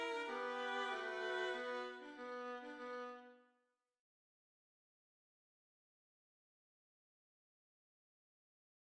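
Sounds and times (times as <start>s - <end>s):
violins: 0.0s - 3.3s.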